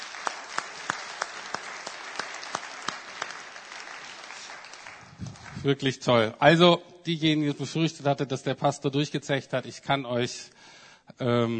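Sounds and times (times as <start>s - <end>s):
audience applause: 0.0s - 5.9s
speech: 5.6s - 11.5s.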